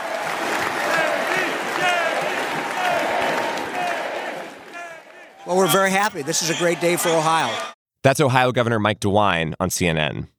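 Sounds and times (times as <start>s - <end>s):
large convention crowd roaring and applauding: 0.0s - 7.8s
speech: 5.7s - 10.3s.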